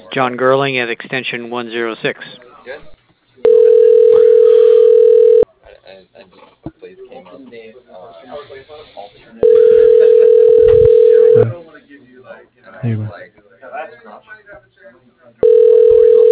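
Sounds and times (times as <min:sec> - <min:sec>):
speech: 0:00.2 - 0:03.5, 0:12.3 - 0:13.2
telephone ringing: 0:03.4 - 0:05.4, 0:09.4 - 0:11.5, 0:15.4 - 0:16.2.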